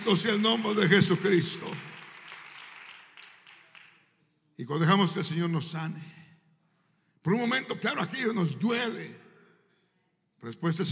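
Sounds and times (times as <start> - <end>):
crowd audience applauding: 0.0 - 4.1
speech: 0.1 - 1.9, 4.6 - 6.2, 7.2 - 9.2, 10.4 - 10.8.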